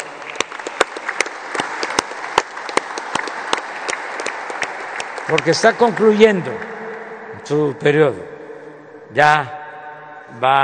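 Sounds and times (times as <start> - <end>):
crowd applause: 0.0 - 6.8
speech: 5.3 - 6.7, 7.5 - 8.3, 9.1 - 9.6, 10.3 - 10.6.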